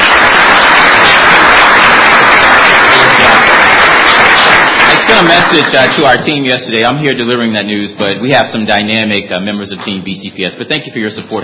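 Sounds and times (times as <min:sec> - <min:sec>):
round of applause: 0:00.0 - 0:06.6
speech: 0:05.2 - 0:11.4.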